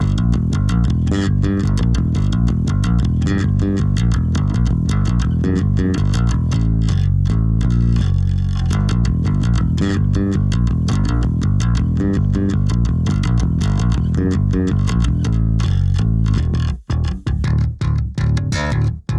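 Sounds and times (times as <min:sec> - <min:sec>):
finger slap bass run: 0:00.0 - 0:19.1.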